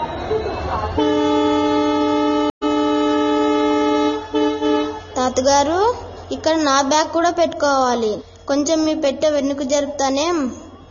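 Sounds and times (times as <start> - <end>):
low rumbling rail noise: 0.0 - 9.4
train horn blaring: 0.8 - 6.3
speech: 5.4 - 10.6.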